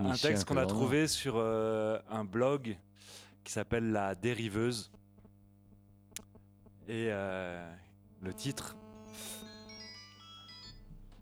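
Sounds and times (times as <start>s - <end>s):
speech: 0.0s - 5.0s, 6.9s - 9.3s
electronic telephone ringtone of incoming calls: 9.2s - 10.9s.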